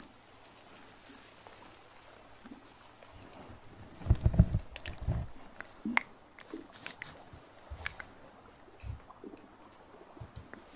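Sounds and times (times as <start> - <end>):
wet mouth clicks, smacks and chewing-like bursts: 4.2 - 8.1.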